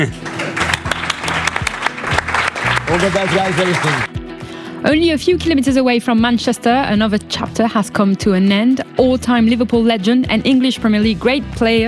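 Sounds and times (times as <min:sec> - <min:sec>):
speech: 0:00.0 - 0:00.4, 0:02.9 - 0:04.2, 0:04.8 - 0:11.8
audience applause at a football player's farewell: 0:00.0 - 0:04.2.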